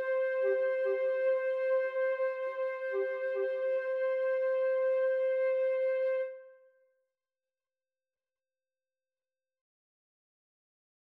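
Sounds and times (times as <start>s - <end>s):
bolero flute duet: 0.0s - 6.6s.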